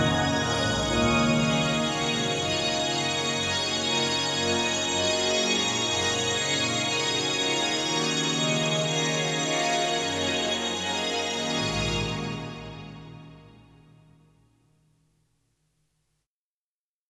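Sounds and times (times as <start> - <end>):
KORG Wavestate MkII violin factory patch: 0.0 - 13.6.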